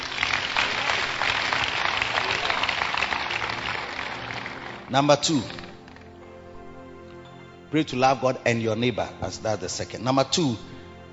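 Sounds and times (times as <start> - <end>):
audience clapping: 0.0 - 6.2
speech: 4.9 - 5.6, 7.7 - 10.7.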